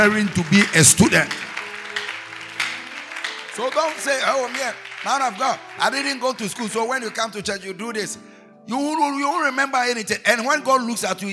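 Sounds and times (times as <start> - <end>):
speech: 0.0 - 1.5, 3.6 - 11.3
audience clapping hands: 0.0 - 7.4.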